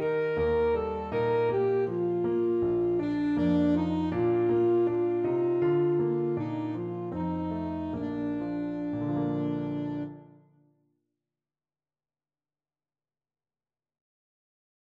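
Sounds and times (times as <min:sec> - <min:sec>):
saxophone: 0:00.0 - 0:10.5.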